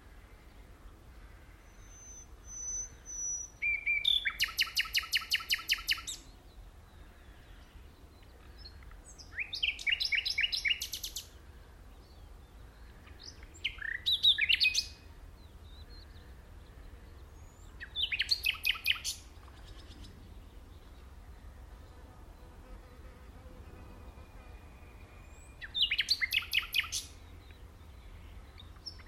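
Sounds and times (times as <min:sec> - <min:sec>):
common nightingale singing: 0:01.6 - 0:06.6, 0:07.4 - 0:11.4, 0:12.0 - 0:16.3, 0:16.9 - 0:21.4, 0:24.2 - 0:29.0.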